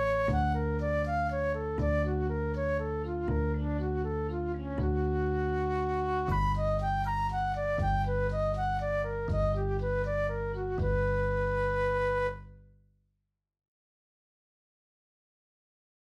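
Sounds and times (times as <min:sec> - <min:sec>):
augmented scale study play-along music in major: 0:00.0 - 0:12.7.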